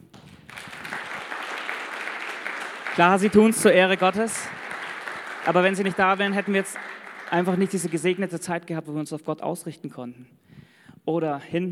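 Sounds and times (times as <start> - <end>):
audience applause: 0.1 - 8.3
speech: 3.0 - 4.6, 5.5 - 10.4, 11.1 - 11.7.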